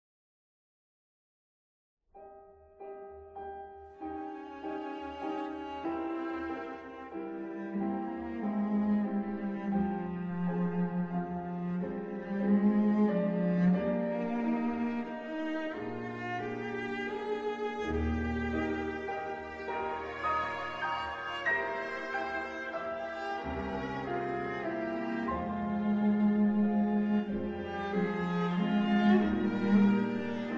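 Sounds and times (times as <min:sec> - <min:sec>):
piano quartet: 0:02.2 - 0:30.5.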